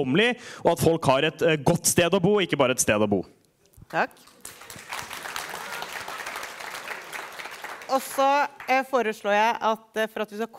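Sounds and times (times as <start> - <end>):
speech: 0.0 - 4.3, 7.9 - 10.5
audience applauding: 4.3 - 8.8.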